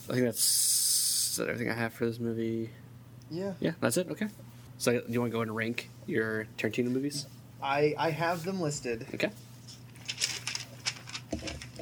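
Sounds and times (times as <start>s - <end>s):
speech: 0.1s - 0.7s, 1.4s - 9.4s
piece of paper rustling: 9.6s - 11.8s.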